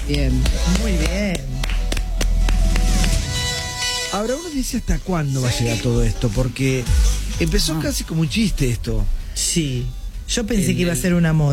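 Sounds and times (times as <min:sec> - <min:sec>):
speech: 0:00.1 - 0:01.8, 0:04.1 - 0:11.5
audience applause: 0:00.4 - 0:03.3.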